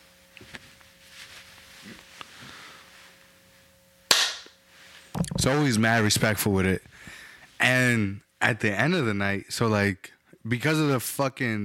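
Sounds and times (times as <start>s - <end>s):
hand clap: 4.1s - 4.6s
speech: 5.4s - 11.6s.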